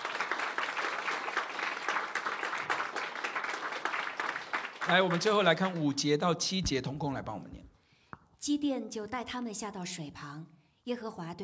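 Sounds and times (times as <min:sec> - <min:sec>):
audience clapping: 0:00.0 - 0:06.4
speech: 0:04.9 - 0:07.6, 0:08.4 - 0:11.4.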